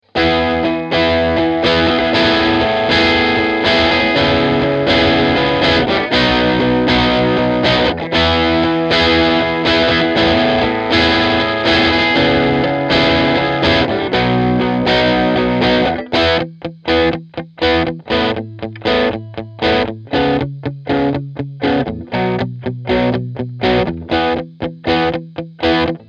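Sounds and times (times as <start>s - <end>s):
Keeley modded Boss DS-1 distortion guitar pedal: 0.0s - 26.0s.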